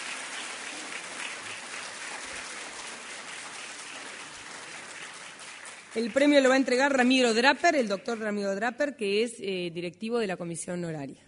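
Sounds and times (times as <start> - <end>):
audience applause: 0.0 - 7.0
speech: 6.0 - 11.2.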